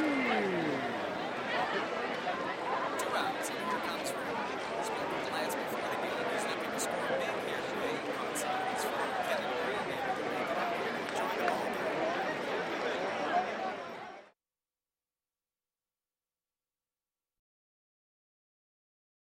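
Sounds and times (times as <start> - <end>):
baseball game sounds: 0.0 - 14.1.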